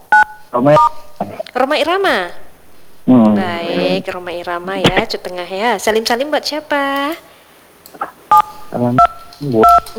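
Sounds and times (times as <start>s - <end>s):
faint phone line sounds: 0.0s - 9.9s
speech: 0.5s - 2.4s, 3.1s - 7.3s, 8.7s - 9.9s
telephone keypad tones from a caller pressing number keys: 8.3s - 9.9s.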